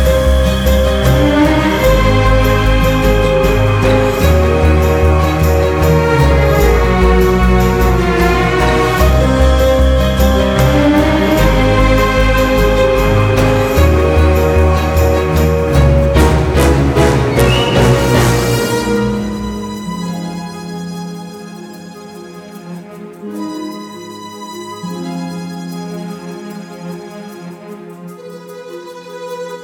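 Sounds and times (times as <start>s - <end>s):
strong adventure music: 0.0s - 21.2s.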